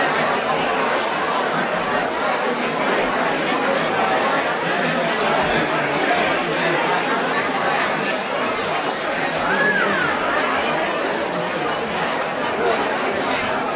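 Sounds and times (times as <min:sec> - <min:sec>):
busy indoor crowd walla at a reception: 0:00.0 - 0:13.7.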